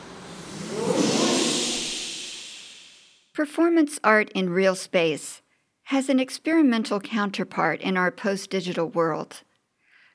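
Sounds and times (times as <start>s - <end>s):
voices imitating ocean waves: 0.0s - 2.4s
speech: 3.4s - 9.5s.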